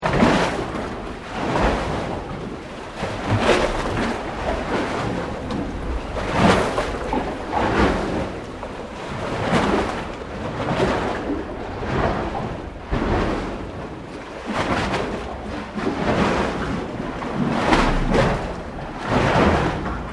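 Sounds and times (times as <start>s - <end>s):
heavy water waves under a concrete wharf: 0.0s - 20.1s.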